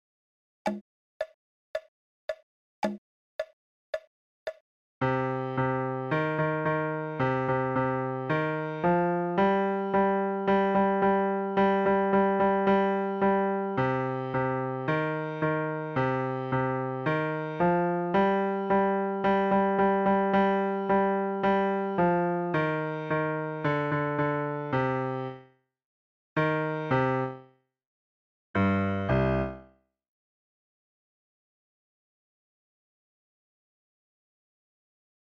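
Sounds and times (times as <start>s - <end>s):
piano folk tune: 5.0s - 25.4s, 26.4s - 27.5s, 28.6s - 29.7s.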